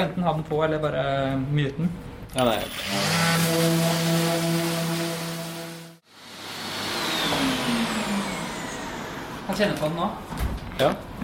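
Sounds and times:
speech: 0:00.0 - 0:04.6, 0:09.5 - 0:11.1
power sander sanding a surface: 0:02.6 - 0:09.6.

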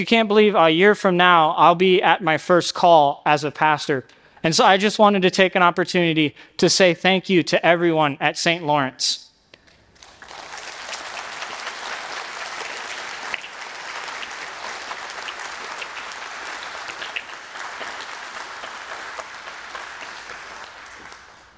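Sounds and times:
speech: 0:00.0 - 0:09.2
audience applause: 0:10.0 - 0:21.5.

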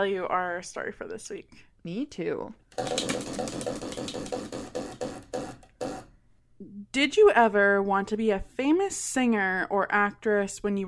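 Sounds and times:
speech: 0:00.0 - 0:04.6, 0:06.9 - 0:10.8
spinning question wheel ticking: 0:02.8 - 0:06.1.

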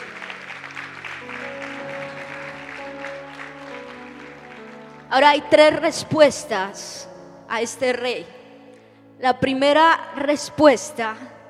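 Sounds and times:
audience applause: 0:00.0 - 0:05.3
speech: 0:05.1 - 0:08.4, 0:09.2 - 0:11.4.

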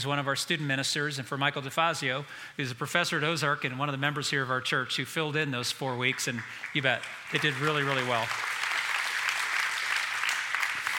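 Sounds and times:
speech: 0:00.0 - 0:08.6
audience clapping: 0:06.0 - 0:10.9.

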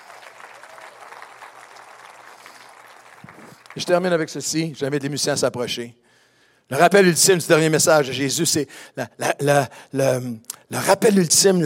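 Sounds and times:
audience applauding joyfully: 0:00.0 - 0:04.4
speech: 0:03.7 - 0:06.0, 0:06.7 - 0:11.6.

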